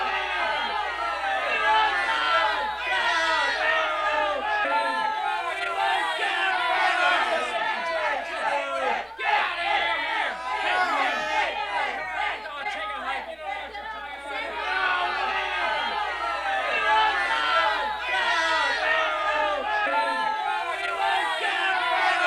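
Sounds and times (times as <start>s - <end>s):
angry men shouting a chant: 0.0s - 22.2s.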